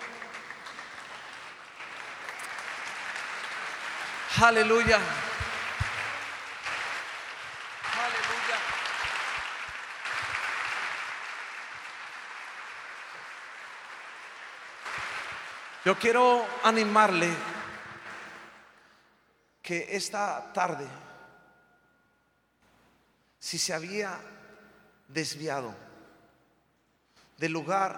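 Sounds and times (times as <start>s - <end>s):
audience applause: 0.0s - 18.8s
speech: 4.3s - 5.2s, 15.8s - 17.5s, 19.7s - 21.1s, 23.5s - 24.4s, 25.1s - 25.9s, 27.4s - 27.9s.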